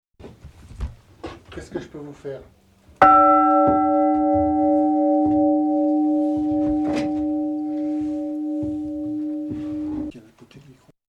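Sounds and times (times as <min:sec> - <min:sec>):
bell ringing: 0:03.0 - 0:10.1.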